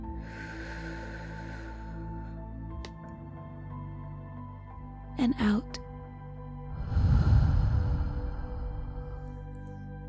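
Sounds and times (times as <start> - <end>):
deep breath in during a guided breathing exercise: 0.1 - 2.4, 6.7 - 9.7
speech: 5.2 - 5.8
steady low droning tone: 6.7 - 9.8.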